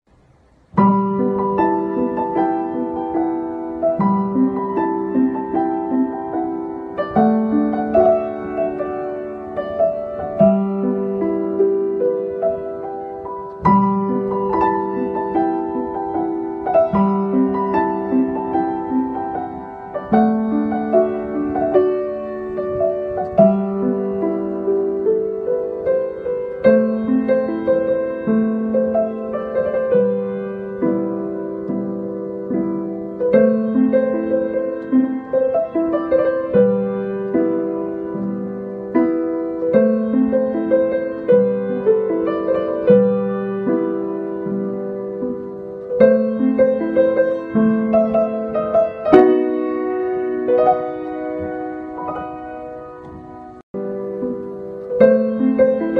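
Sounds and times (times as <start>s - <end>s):
piano: 0.0s - 55.9s.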